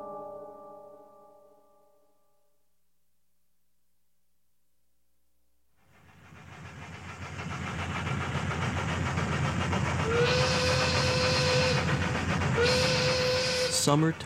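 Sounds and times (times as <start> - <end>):
steam locomotive running through the American South in summer: 5.8 - 14.2
steam locomotive whistle blasts: 10.0 - 14.0.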